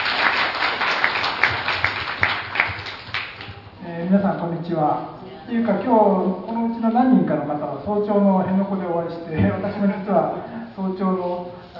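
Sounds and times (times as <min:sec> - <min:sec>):
room full of people applauding: 0:00.0 - 0:03.6
speech: 0:04.1 - 0:11.7.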